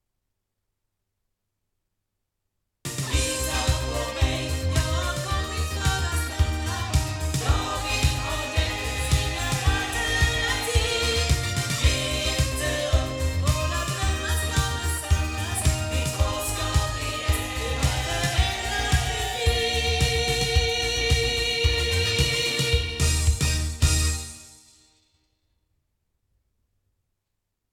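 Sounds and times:
sound from loudspeakers: 2.9 - 24.3.

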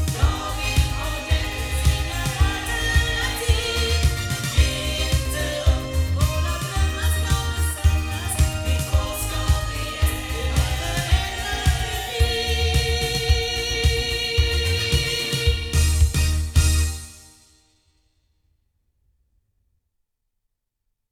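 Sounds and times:
sound from MXL 1006BP loudspeakers: 0.0 - 16.9.

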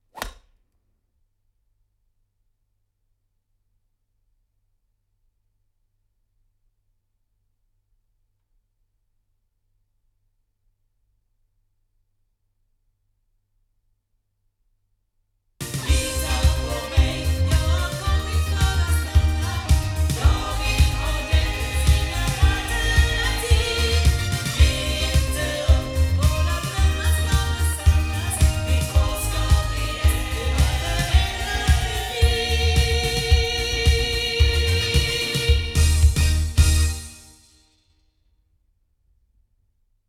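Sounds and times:
ADK A51S Model S loudspeakers recorded with microphones: 15.6 - 36.9.

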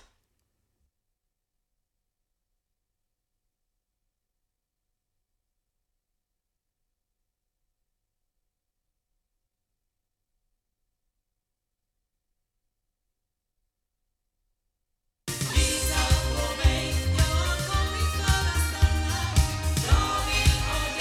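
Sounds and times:
loudspeakers recorded with Rode NT3 on battery: 15.4 - 20.9.

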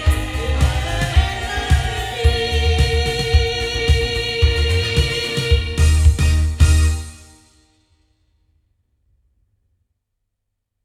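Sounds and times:
sound from loudspeakers: 0.0 - 7.5.

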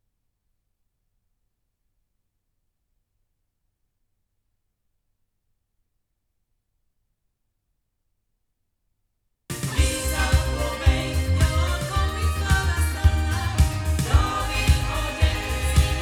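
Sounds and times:
loudspeakers: 9.6 - 16.0.

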